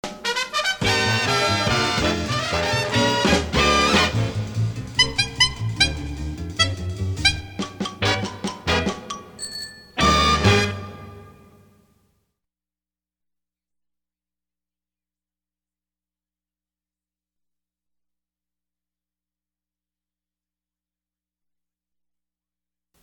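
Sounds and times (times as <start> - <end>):
horn: 0.0 - 9.3, 10.0 - 11.9.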